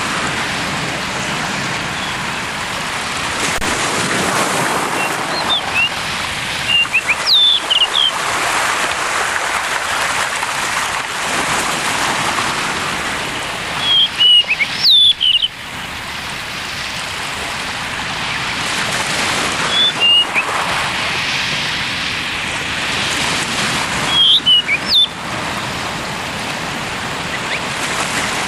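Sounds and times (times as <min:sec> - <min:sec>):
continuous rushing noise: 0:00.0 - 0:28.4
blue rock thrush song: 0:05.0 - 0:05.9, 0:06.7 - 0:08.1, 0:13.8 - 0:15.5, 0:19.7 - 0:20.5, 0:24.1 - 0:25.1.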